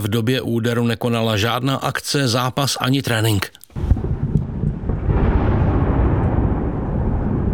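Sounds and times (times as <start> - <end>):
speech: 0.0 - 3.6
powerful explosions from missile strike in Odesa: 3.8 - 7.5.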